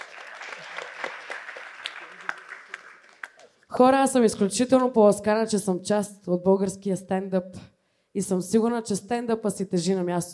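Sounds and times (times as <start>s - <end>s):
audience applause at a stand-up comedy roast: 0.0s - 3.6s
speech: 3.8s - 10.3s.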